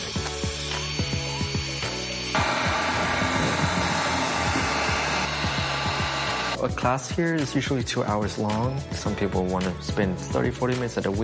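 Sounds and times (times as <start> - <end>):
heat gun drying clay pottery: 0.0 - 6.6
speech: 6.6 - 11.2.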